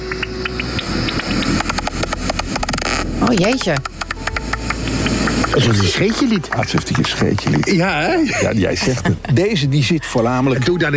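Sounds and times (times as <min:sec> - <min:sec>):
common pipistrelle bat call via bat detector: 0:00.0 - 0:05.9
speech: 0:03.3 - 0:03.9, 0:04.9 - 0:10.9
laughter: 0:05.3 - 0:10.9.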